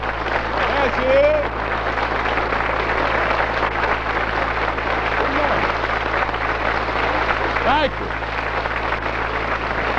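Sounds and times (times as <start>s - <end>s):
studio audience applause welcoming a guest at a television show: 0.0s - 9.9s
speech: 0.9s - 1.6s.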